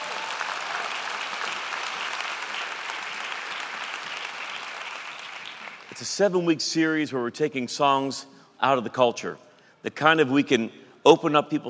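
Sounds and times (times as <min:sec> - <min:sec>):
church congregation applause: 0:00.0 - 0:06.4
speech: 0:06.0 - 0:11.6.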